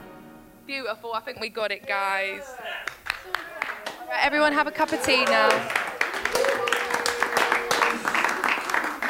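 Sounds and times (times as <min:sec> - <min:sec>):
speech: 0:00.8 - 0:03.5, 0:04.1 - 0:06.8
group applause: 0:02.8 - 0:09.0.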